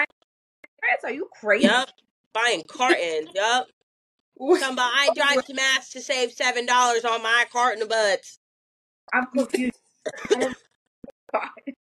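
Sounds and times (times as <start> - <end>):
speech: 0.9 - 3.8, 4.4 - 8.4, 9.1 - 10.6, 11.3 - 11.7
cough: 9.6 - 10.6.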